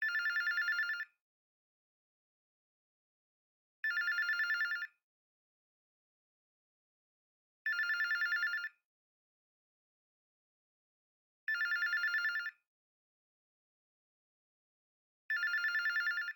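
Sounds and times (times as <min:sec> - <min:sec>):
hotel phone ringing: 0:00.0 - 0:01.0, 0:03.8 - 0:04.8, 0:07.7 - 0:08.7, 0:11.5 - 0:12.5, 0:15.3 - 0:16.3.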